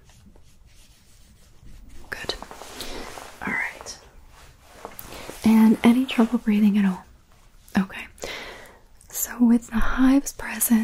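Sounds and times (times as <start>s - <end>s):
alcohol pad wiped across skin: 0.0s - 7.0s
speech: 5.5s - 7.1s, 9.4s - 10.8s.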